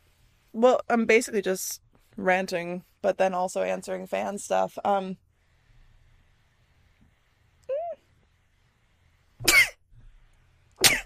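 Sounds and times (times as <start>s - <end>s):
speech: 0.6s - 5.2s
person sneezing: 9.4s - 9.8s, 10.8s - 11.0s.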